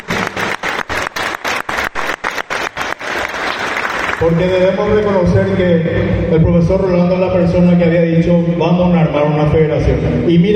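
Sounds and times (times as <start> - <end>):
applause for a futsal academy teacher: 0.0 - 5.5
speech: 4.2 - 10.5.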